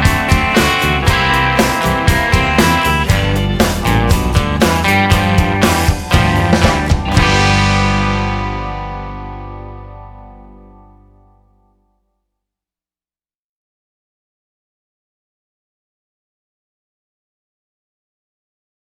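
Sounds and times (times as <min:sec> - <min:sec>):
blues in G: 0:00.0 - 0:11.7.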